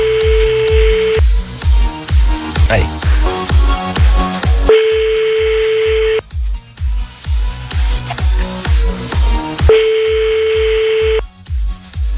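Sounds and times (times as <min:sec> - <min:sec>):
unanswered phone call ringback tones: 0:00.0 - 0:01.2, 0:04.7 - 0:06.2, 0:09.7 - 0:11.3
loud pulsing music beat: 0:00.0 - 0:12.1
speech: 0:02.7 - 0:02.9.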